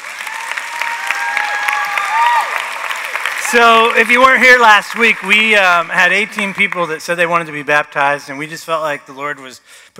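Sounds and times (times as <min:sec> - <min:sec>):
audience applause: 0:00.0 - 0:07.0
speech: 0:03.5 - 0:09.9.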